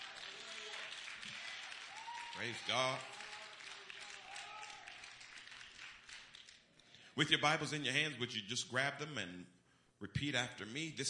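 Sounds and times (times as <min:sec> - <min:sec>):
live audience clapping and cheering: 0:00.0 - 0:06.8
speech: 0:02.4 - 0:03.2, 0:07.2 - 0:11.0.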